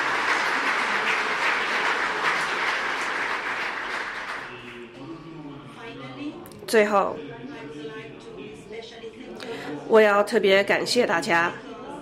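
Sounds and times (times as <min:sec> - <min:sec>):
audience applause: 0:00.0 - 0:04.8
speech: 0:06.7 - 0:07.3, 0:09.9 - 0:11.6.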